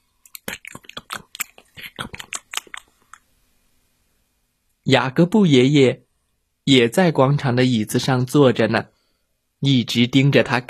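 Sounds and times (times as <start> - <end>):
chewing chocolate with crunchy bites: 0.3 - 3.2
speech: 4.9 - 6.0, 6.7 - 8.9, 9.6 - 10.6.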